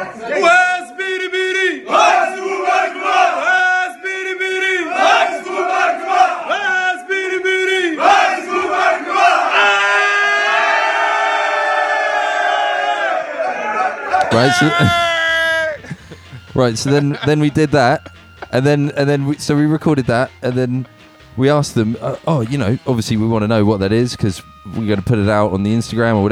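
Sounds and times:
group shouting together at top of voices: 0.0s - 19.1s
laughter: 14.1s - 26.3s
speech: 14.4s - 15.1s, 16.6s - 26.3s.

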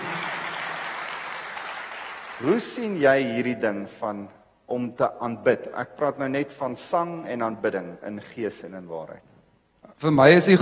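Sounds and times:
audience applauding: 0.0s - 2.6s
speech: 2.4s - 9.3s, 10.0s - 10.5s.

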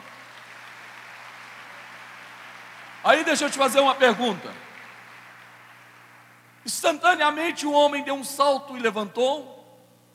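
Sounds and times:
audience applauding: 0.0s - 6.6s
speech: 3.0s - 4.7s, 6.8s - 9.6s.

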